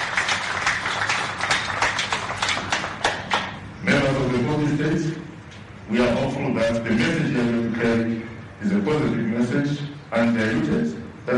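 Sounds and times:
crowd applauding: 0.0 - 3.6
speech: 4.8 - 11.3.

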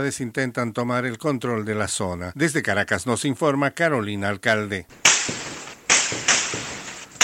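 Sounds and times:
speech: 0.0 - 5.4
bursts of gunfire: 5.0 - 7.2.

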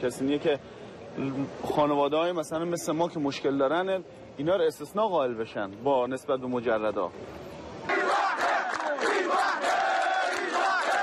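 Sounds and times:
speech: 0.0 - 7.5
crowd of migrants shouting and chanting in protest: 7.8 - 11.0.

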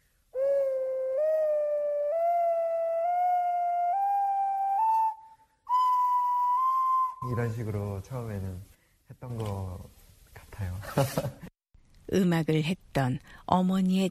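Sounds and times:
beginner playing an ocarina: 0.3 - 7.8
speech: 7.3 - 10.0, 10.6 - 11.5, 12.1 - 14.0.

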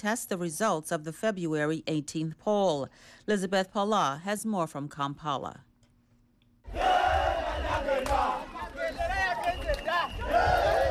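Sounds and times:
speech: 0.0 - 5.7
celebrating crowd cheering and shouting: 6.7 - 10.8.

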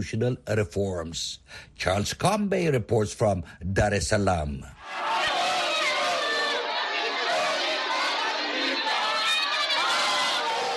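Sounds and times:
speech: 0.0 - 5.0
Chadema party supporters cheering and singing solidarity songs outside the High Court: 4.8 - 10.7.

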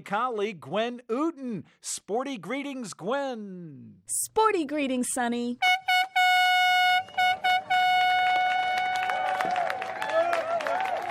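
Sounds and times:
speech: 0.0 - 5.9
horn blast: 5.6 - 9.6
cheers of loved ones: 7.0 - 11.0.

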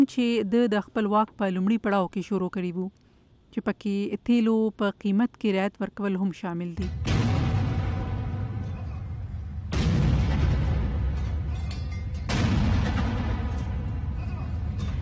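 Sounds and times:
speech: 0.0 - 7.1
21-gun cannon salute by an army unit after a presidential oath: 6.8 - 11.6, 12.2 - 14.2.

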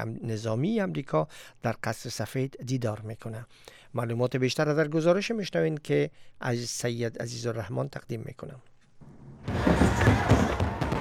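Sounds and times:
speech: 0.0 - 8.7
Fourth of July fireworks exploding: 9.0 - 10.9.

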